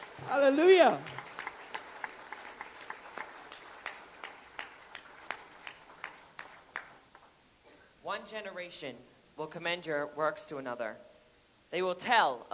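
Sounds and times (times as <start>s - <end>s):
audience applauding: 0.0s - 7.3s
speech: 0.3s - 1.1s, 8.2s - 11.1s, 11.7s - 12.5s.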